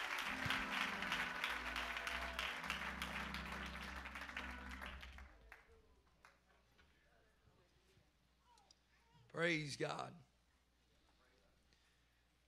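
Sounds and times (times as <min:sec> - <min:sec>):
low organ chord: 0:00.0 - 0:05.2
audience clapping hands: 0:00.0 - 0:06.5
speech: 0:09.4 - 0:10.3.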